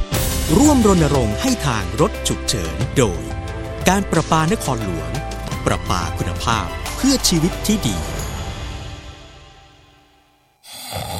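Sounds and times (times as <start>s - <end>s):
speech: 0.5s - 8.2s
snoring: 10.6s - 11.1s.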